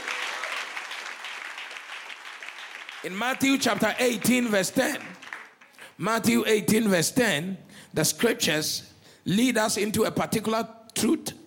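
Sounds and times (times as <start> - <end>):
audience applause: 0.0 - 5.9
speech: 3.0 - 5.3, 6.0 - 11.4.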